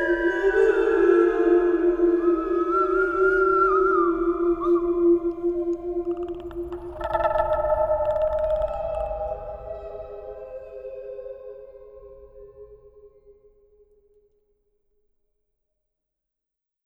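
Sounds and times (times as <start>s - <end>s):
moon atmosphere soundscape: 0.0s - 12.6s.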